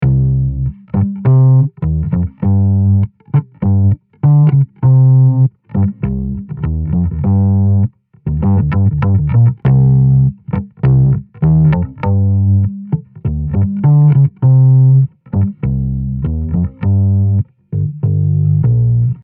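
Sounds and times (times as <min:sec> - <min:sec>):
bass: 0:00.0 - 0:19.2.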